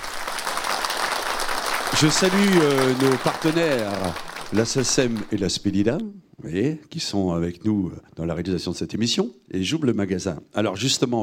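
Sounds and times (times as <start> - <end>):
audience clapping: 0.0 - 6.0
speech: 2.0 - 11.2.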